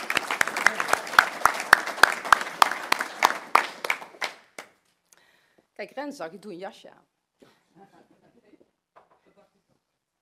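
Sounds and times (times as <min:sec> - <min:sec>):
audience applause: 0:00.0 - 0:04.7
speech: 0:05.8 - 0:07.1.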